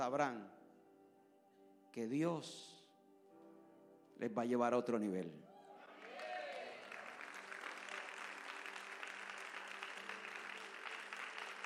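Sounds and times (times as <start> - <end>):
speech: 0.0 - 0.6, 2.0 - 2.8, 4.2 - 5.5
audience applause: 5.8 - 11.6.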